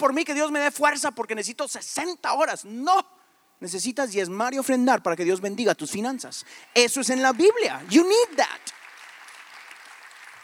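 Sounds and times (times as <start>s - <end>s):
speech: 0.0s - 8.7s
scattered applause from part of an audience: 7.1s - 10.4s.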